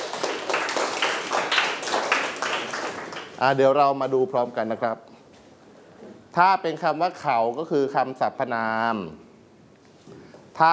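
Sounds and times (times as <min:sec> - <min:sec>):
classroom group clapping: 0:00.0 - 0:03.8
speech: 0:03.4 - 0:05.1, 0:06.3 - 0:09.2.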